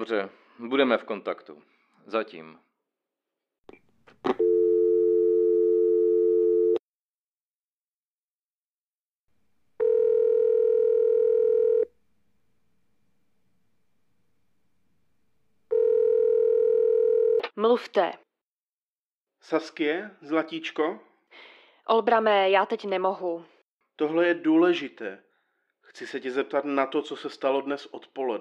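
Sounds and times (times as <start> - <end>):
speech: 0.0 - 2.7, 17.6 - 18.2, 19.4 - 25.3, 25.9 - 28.3
phone call ringing tone: 4.3 - 6.8, 9.8 - 11.9, 15.7 - 17.4.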